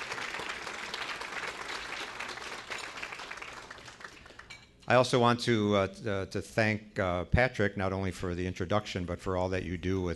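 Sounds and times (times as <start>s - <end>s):
round of applause: 0.0s - 4.7s
speech: 4.9s - 10.1s.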